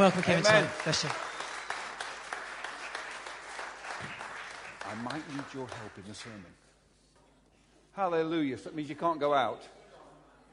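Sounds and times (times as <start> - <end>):
speech: 0.0 - 1.3, 4.9 - 6.6, 8.0 - 9.8
audience applause: 0.0 - 6.4.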